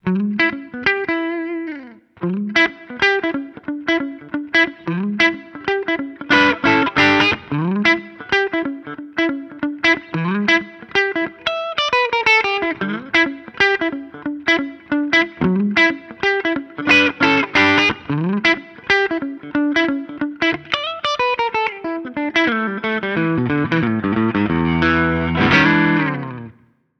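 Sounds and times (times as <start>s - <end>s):
guitar: 0.0s - 26.9s.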